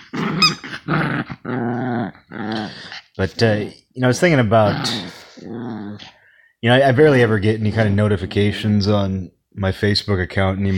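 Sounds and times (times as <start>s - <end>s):
dog growling during tug of war: 0.0s - 3.2s, 4.6s - 6.2s
speech: 3.2s - 5.0s, 6.6s - 10.7s.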